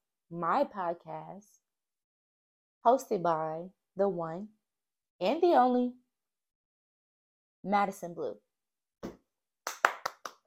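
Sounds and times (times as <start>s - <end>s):
speech: 0.3s - 1.7s, 2.8s - 4.6s, 5.2s - 6.0s, 7.6s - 8.4s
round of applause: 9.6s - 10.4s.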